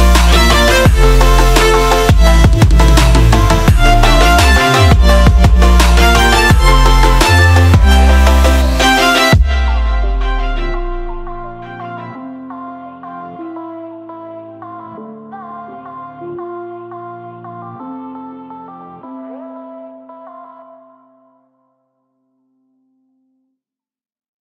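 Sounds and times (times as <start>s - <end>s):
trap beat: 0.0s - 11.7s.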